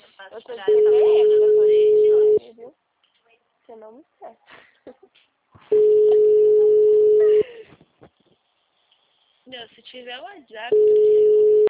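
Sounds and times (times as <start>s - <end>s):
speech: 0.2s - 1.5s, 3.7s - 5.9s, 9.5s - 11.2s
telephone tone on a call to a number that does not answer: 0.7s - 2.4s, 5.7s - 7.4s, 10.7s - 11.6s.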